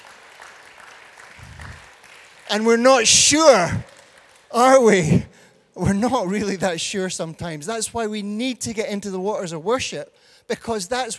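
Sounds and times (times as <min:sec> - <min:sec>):
audience applause: 0:00.0 - 0:05.4
speech: 0:02.5 - 0:03.9, 0:04.5 - 0:11.1.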